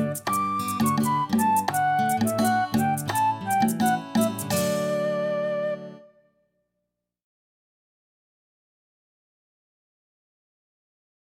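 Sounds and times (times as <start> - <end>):
instrumental music: 0.0 - 6.3.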